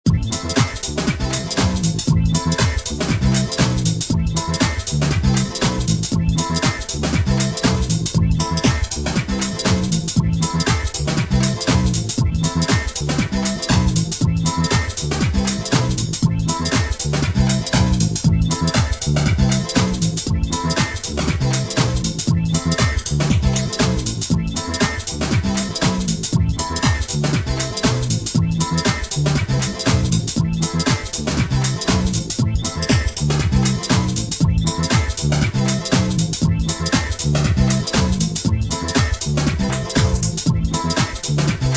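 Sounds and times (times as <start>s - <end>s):
groove music: 0.0s - 41.7s.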